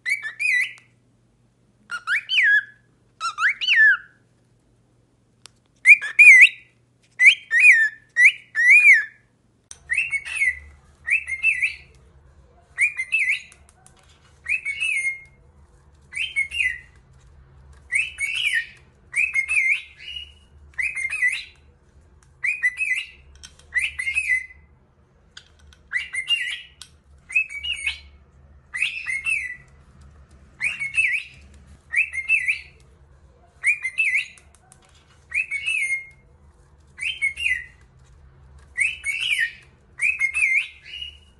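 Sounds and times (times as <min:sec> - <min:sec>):
cockatiel whistling warbled phrases: 0:00.0 - 0:00.9, 0:01.9 - 0:04.2, 0:05.8 - 0:12.0, 0:12.8 - 0:13.6, 0:14.4 - 0:15.4, 0:16.1 - 0:17.0, 0:17.9 - 0:21.6, 0:22.4 - 0:24.7, 0:25.9 - 0:29.7, 0:30.6 - 0:32.8, 0:33.6 - 0:34.5, 0:35.3 - 0:36.2, 0:37.0 - 0:37.8, 0:38.7 - 0:41.3
faint low hum: 0:00.0 - 0:41.3.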